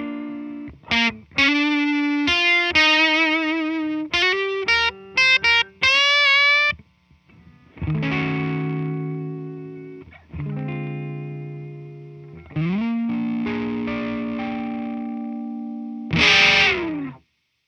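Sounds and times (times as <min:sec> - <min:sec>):
blues electric guitar lead with full FDM attenuation: 0:00.0 - 0:17.2.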